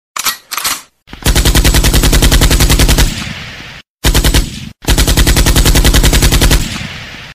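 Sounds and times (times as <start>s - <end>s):
real weapon firing: 1.2s - 3.4s, 4.0s - 7.3s.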